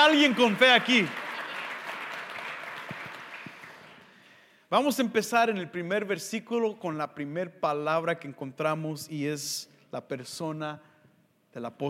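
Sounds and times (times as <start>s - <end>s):
audience applause: 0.0s - 4.2s
speech: 0.1s - 1.2s, 4.7s - 10.9s, 11.6s - 11.8s.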